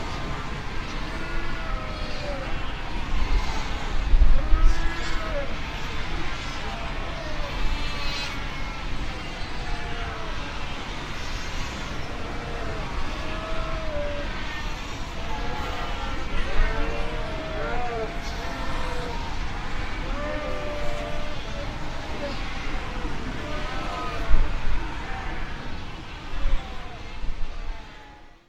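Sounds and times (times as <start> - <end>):
fur seal colony bleating and moaning calls: 0.0 - 28.4.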